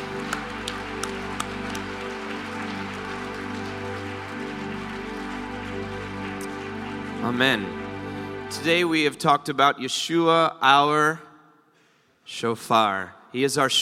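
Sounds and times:
people clapping: 0.0s - 8.6s
speech: 7.2s - 7.8s, 8.5s - 11.3s, 12.3s - 13.8s.

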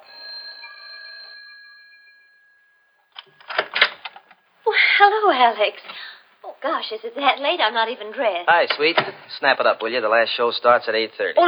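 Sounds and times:
doorbell ringing: 0.0s - 5.9s
clattering rattling noise: 3.1s - 10.4s
speech: 4.7s - 11.4s.

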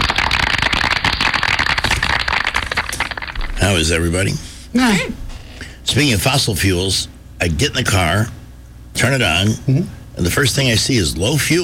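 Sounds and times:
crowd clapping: 0.0s - 3.5s
speech: 3.7s - 5.2s, 5.8s - 8.4s, 9.0s - 11.6s.

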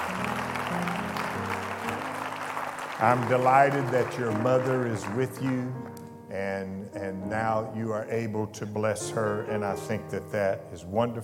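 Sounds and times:
audience applause: 0.0s - 5.9s
speech: 3.0s - 11.2s.

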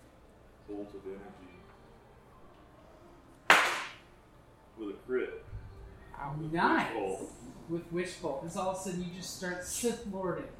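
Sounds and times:
speech: 0.7s - 1.7s, 4.8s - 5.6s, 6.2s - 10.5s
hands clapping: 3.4s - 4.0s.

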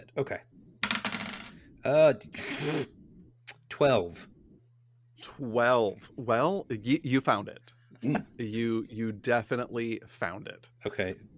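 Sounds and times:
speech: 0.2s - 0.6s, 1.8s - 3.0s, 3.7s - 4.3s, 5.2s - 11.3s
two six-sided dice rolled during a tabletop role-playing game: 0.8s - 1.6s.

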